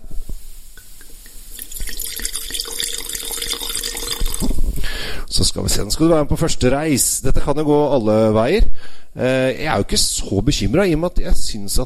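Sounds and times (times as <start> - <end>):
white wine pouring into a glass: 0.8 - 5.0
speech: 5.3 - 11.8.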